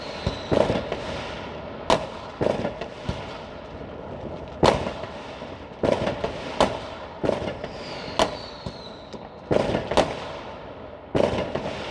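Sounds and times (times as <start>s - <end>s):
thin whistling rockets rising: 0.0s - 3.5s, 4.6s - 10.6s, 11.2s - 11.8s
New Year's Eve fireworks cracking and booming: 0.0s - 11.8s
steady crackle and murmur: 0.6s - 6.3s.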